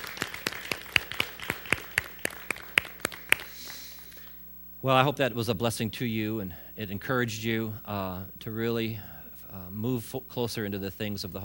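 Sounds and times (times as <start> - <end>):
audience hand clapping: 0.0 - 4.2
speech: 4.8 - 11.4.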